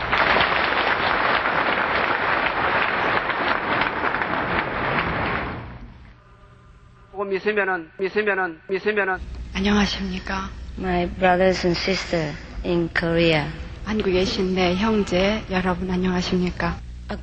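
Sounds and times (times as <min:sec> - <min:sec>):
audience applause: 0:00.0 - 0:05.9
speech: 0:07.3 - 0:17.2.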